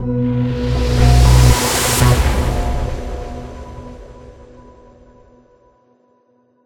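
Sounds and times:
transition end sound: 0:00.0 - 0:05.3.

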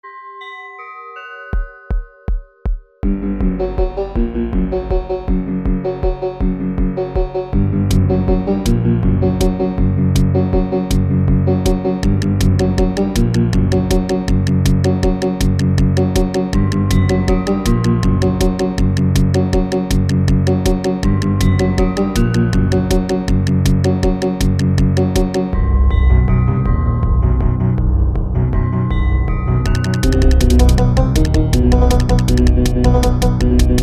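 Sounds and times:
march music: 0:03.0 - 0:33.8.

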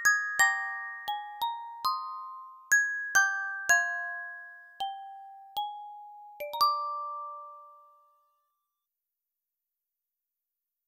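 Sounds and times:
music box: 0:00.0 - 0:08.5.

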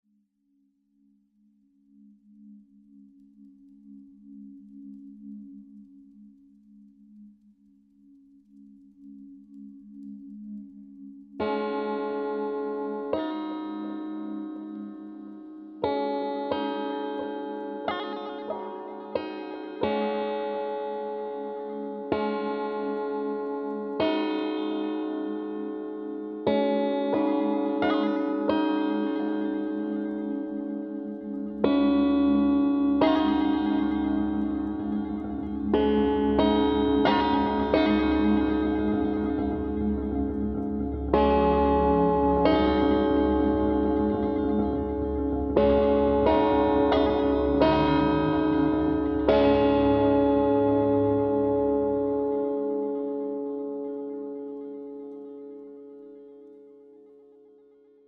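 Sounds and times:
bouncy guitar: 0:11.5 - 0:55.0.

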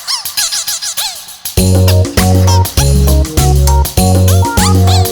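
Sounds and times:
game menu music: 0:01.6 - 0:05.1.

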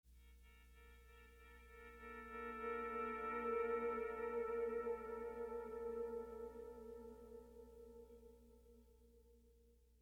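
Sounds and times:
pleasant guitar playing: 0:00.8 - 0:08.2.

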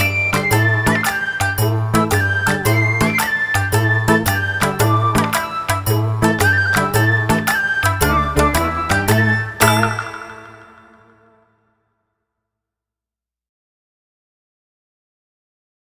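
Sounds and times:
distant Japanese orchestra playing: 0:00.0 - 0:11.5.

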